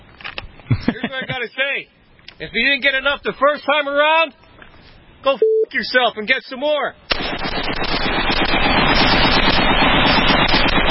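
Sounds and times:
laughter: 0.7s - 1.6s
speech: 0.7s - 4.4s, 5.2s - 7.0s, 7.6s - 8.3s
machine gun fire from a played video: 7.1s - 10.8s.

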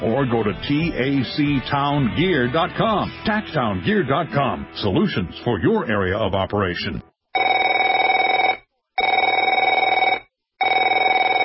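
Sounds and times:
speech: 0.0s - 7.1s
telephone bell ringing: 7.4s - 11.4s.

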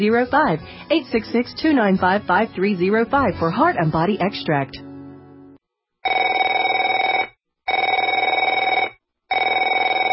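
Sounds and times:
speech: 0.0s - 4.9s
telephone ringing: 6.0s - 10.1s.

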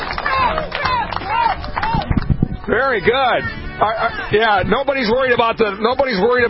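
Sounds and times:
supporters whooping: 0.0s - 2.1s
scattered claps from supporters: 0.0s - 2.8s
crowd of supporters chattering while waiting for the US President's visit: 0.0s - 6.4s
speech: 2.7s - 6.4s.

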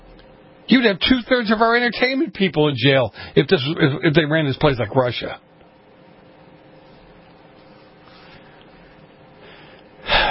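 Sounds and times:
speech: 0.7s - 5.5s
deep breath drawn in as a gasp: 8.1s - 10.2s.

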